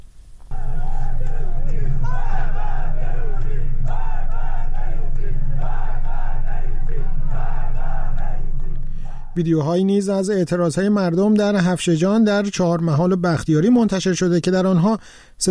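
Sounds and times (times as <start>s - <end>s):
large protest crowd chanting slogans in unison: 0.5s - 9.4s
speech: 9.4s - 15.5s.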